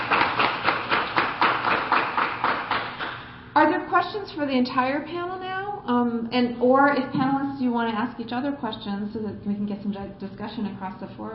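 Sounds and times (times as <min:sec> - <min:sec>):
audience applause for the panel: 0:00.0 - 0:03.2
speech: 0:03.6 - 0:11.3.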